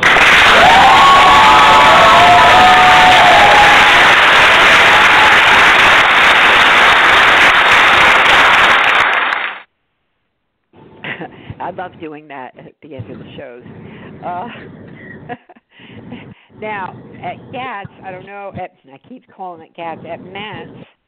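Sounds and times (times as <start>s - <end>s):
audience applause: 0.0s - 9.7s
speech: 11.8s - 15.4s, 16.6s - 21.0s.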